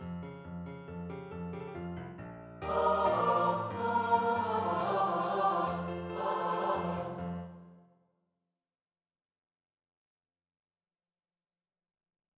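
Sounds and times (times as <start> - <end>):
piano: 0.0 - 7.9
SATB choir singing: 2.6 - 7.8.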